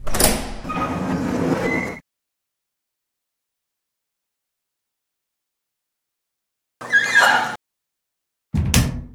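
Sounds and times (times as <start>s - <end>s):
door sequence: 0.0s - 2.0s, 6.8s - 7.6s.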